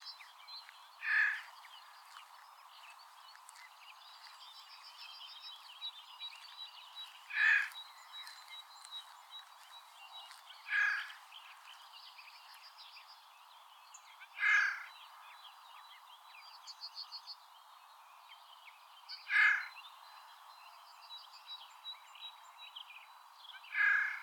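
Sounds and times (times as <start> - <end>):
Garrulus glandarius: 1.0 - 1.5, 7.2 - 7.8, 10.7 - 11.2, 14.3 - 14.9, 19.3 - 19.8, 23.7 - 24.2.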